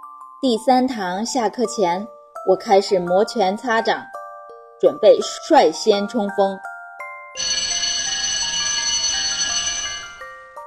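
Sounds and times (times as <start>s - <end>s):
speech: 0.4s - 4.2s, 4.8s - 6.7s
electronic school bell ringing: 7.4s - 10.6s.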